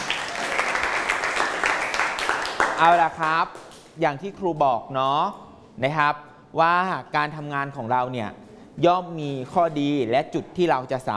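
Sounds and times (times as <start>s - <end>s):
classmates clapping: 0.0s - 4.0s
speech: 2.8s - 11.1s.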